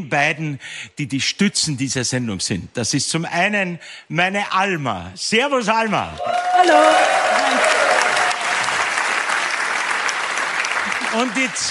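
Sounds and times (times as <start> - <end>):
speech: 0.0 - 7.8, 11.1 - 11.6
audience applause: 6.2 - 11.6.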